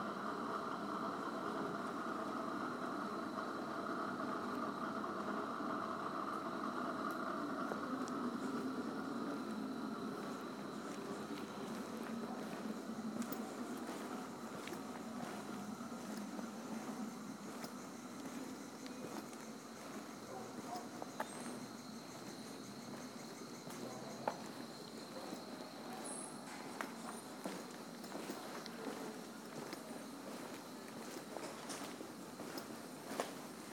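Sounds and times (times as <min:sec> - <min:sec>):
insects in Mui Wo Village, Hong Kong: 0:00.0 - 0:33.7
birds in Mui Wo Village, Hong Kong: 0:09.8 - 0:29.2.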